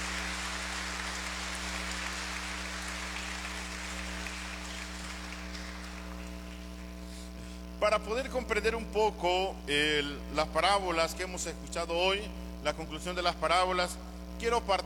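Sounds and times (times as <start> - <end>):
audience applauding: 0.0 - 7.0
low electrical hum: 0.0 - 14.8
speech: 7.8 - 14.8.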